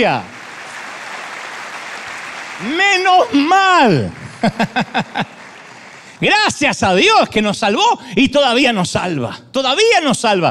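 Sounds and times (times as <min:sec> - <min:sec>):
speech: 0:00.0 - 0:00.4, 0:02.6 - 0:05.4, 0:06.2 - 0:10.4
audience applauding: 0:00.0 - 0:07.0
laughter: 0:03.9 - 0:06.1.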